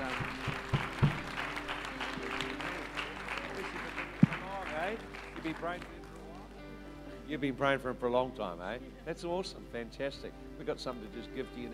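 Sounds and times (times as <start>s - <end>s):
audience applause: 0.0s - 6.5s
speech: 5.5s - 6.0s, 7.3s - 11.7s.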